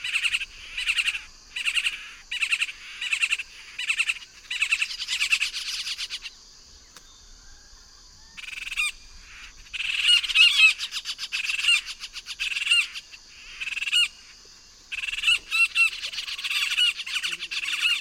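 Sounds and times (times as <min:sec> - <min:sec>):
yellow-tufted woodpecker group harsh chattering calls, Melanerpes cruentatus: 0:00.0 - 0:07.0, 0:08.4 - 0:17.9.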